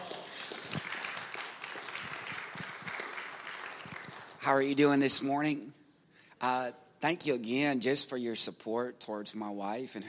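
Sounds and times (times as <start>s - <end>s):
crowd applauding: 0.0s - 4.7s
speech: 4.4s - 5.8s, 6.4s - 10.0s.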